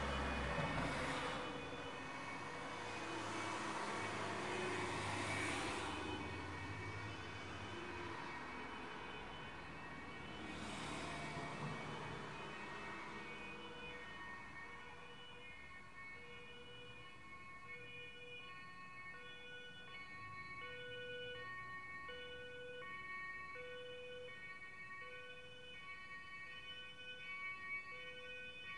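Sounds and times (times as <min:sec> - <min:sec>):
ambience: 0:00.0 - 0:15.9
German siren car driving by: 0:00.0 - 0:28.7.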